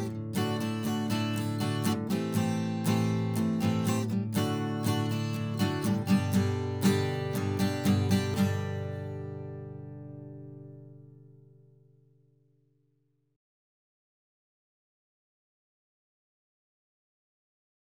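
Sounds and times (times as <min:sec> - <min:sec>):
acoustic steel-strung guitar strummed: 0:00.0 - 0:11.6.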